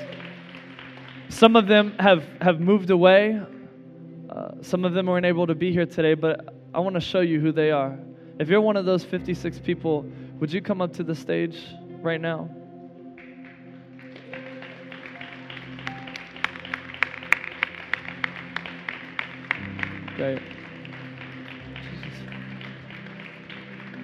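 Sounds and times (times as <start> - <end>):
audience applauding: 0.0 - 2.1, 13.2 - 24.0
speech: 1.3 - 3.6, 4.4 - 12.6, 20.2 - 20.5.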